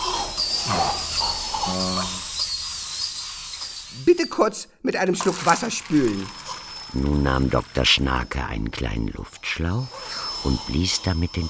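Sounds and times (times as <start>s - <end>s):
dental drill shrilling: 0.0s - 11.4s
speech: 0.7s - 1.0s, 1.6s - 2.2s, 4.0s - 11.4s
wordless voice groaning: 0.7s - 1.1s.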